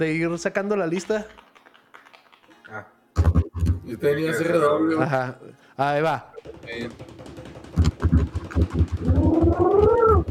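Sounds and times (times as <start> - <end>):
speech: 0.0 - 1.4, 2.7 - 3.0, 3.9 - 7.2
pigeon cooing: 8.4 - 10.2.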